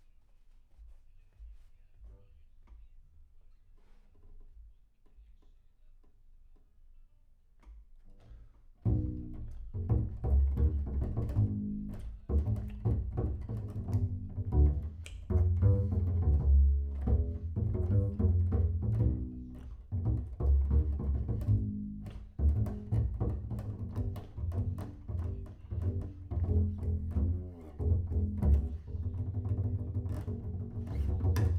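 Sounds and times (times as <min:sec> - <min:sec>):
bass sound: 0:08.9 - 0:31.5.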